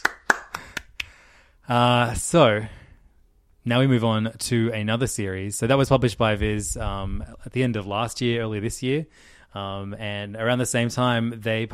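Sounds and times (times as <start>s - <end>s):
hand claps: 0.0s - 1.2s
speech: 1.7s - 2.8s, 3.6s - 11.7s.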